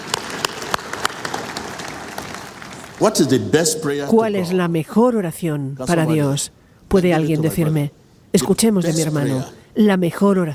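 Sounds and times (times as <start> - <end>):
audience applause: 0.0 - 3.5
speech: 3.0 - 10.5.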